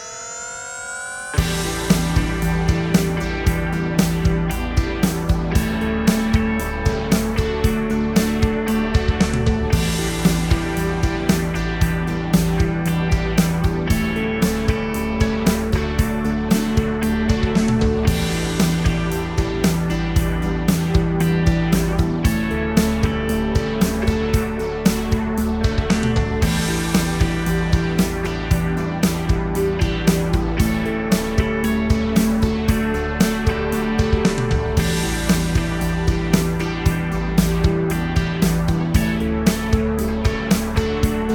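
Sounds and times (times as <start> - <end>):
80s synth effect riser: 0.0 - 41.3.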